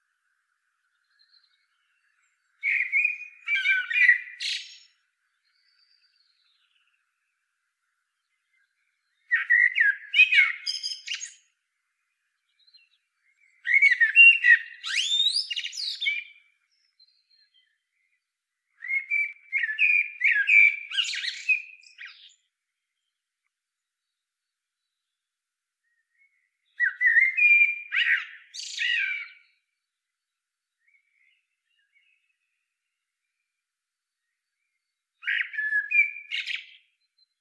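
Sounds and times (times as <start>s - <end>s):
Eurasian blackbird fluty warbling song: 0.2s - 23.2s, 24.8s - 30.0s, 30.8s - 33.4s, 34.1s - 37.3s.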